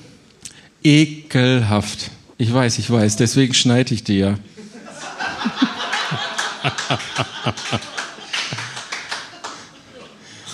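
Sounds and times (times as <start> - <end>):
speech: 0.8 - 4.7, 6.6 - 8.0
laughter: 4.6 - 10.3
audience applause: 5.6 - 9.7.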